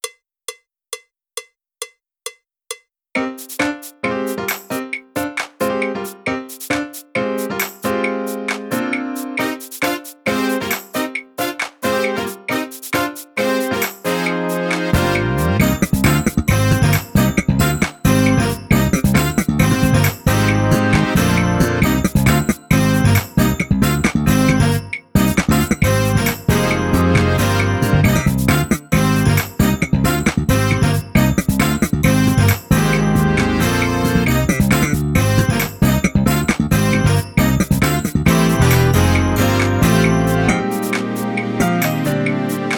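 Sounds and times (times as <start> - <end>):
music without drums: 0.0 - 42.7.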